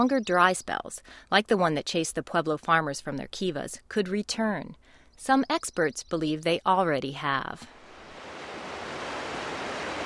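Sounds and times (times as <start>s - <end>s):
speech: 0.0s - 7.8s
rushing water at the confluence of the Colorado and Roaring Fork Rivers: 7.8s - 10.0s.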